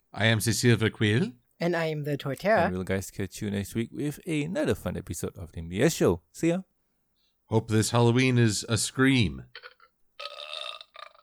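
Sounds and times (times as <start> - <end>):
speech: 0.2 - 6.7, 7.5 - 10.4
loud drawn-out burps: 9.4 - 11.2.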